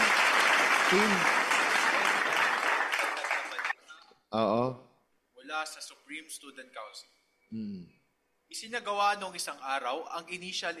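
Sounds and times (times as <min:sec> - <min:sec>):
audience applauding the National Aviation Academy of the Philippines staff: 0:00.0 - 0:03.8
speech: 0:00.9 - 0:01.4, 0:04.3 - 0:04.8, 0:05.5 - 0:07.9, 0:08.5 - 0:10.7.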